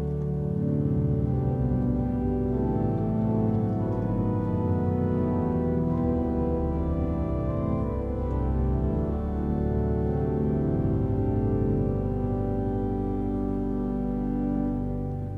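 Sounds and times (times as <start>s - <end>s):
pipe organ diapason stop: 0.0s - 15.3s.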